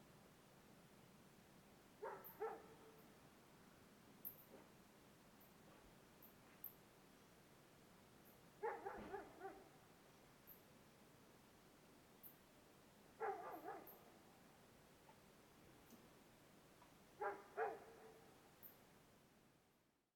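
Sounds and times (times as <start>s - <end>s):
dog at night: 2.0s - 3.0s, 8.6s - 9.8s, 13.2s - 14.1s, 17.2s - 18.3s.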